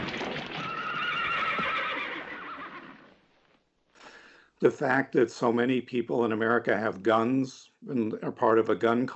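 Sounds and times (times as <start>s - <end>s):
mule whinnying: 0.4s - 3.1s
speech: 4.6s - 9.1s.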